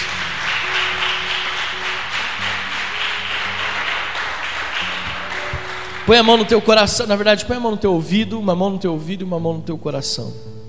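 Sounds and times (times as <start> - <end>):
audience applauding: 0.0 - 7.2
soft sustained low musical tones: 0.0 - 10.6
speech: 6.1 - 10.5.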